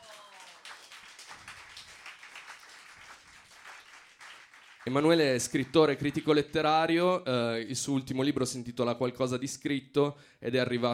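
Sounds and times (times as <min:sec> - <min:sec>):
audience applause: 0:00.0 - 0:06.3
speech: 0:04.9 - 0:10.9.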